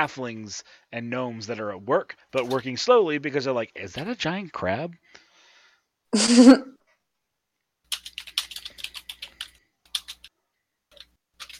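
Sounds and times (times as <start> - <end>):
speech: 0.0 - 5.0, 6.1 - 6.8
throat clearing: 6.2 - 6.7
keyboard typing: 7.9 - 10.3, 10.9 - 11.5.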